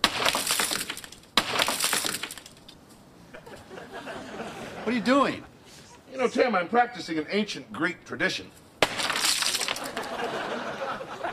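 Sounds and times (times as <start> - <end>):
jugs smashing against a front door: 0.0 - 2.6, 8.8 - 10.1
shards clinking and clattering: 0.0 - 2.8, 8.8 - 10.2
laughter: 3.3 - 6.0, 9.8 - 11.3
speech: 4.9 - 5.5, 6.2 - 8.6.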